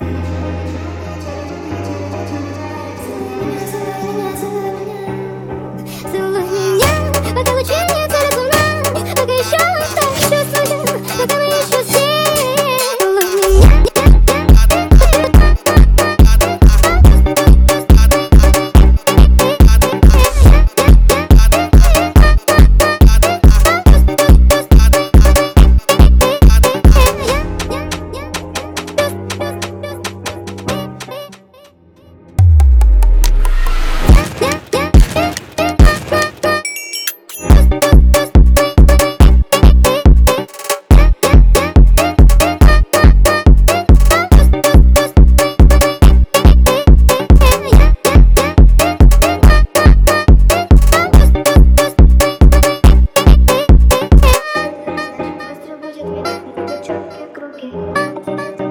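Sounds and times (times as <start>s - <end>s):
sped-up phonk music: 6.8s - 31.5s, 32.4s - 36.6s, 37.5s - 54.7s.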